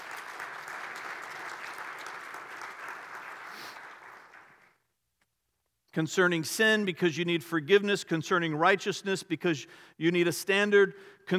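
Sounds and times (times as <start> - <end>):
audience applause: 0.0 - 4.8
speech: 6.0 - 11.3.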